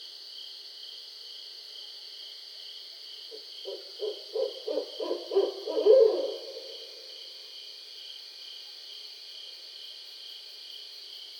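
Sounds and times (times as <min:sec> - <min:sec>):
barred owl hooting: 0:03.6 - 0:07.0.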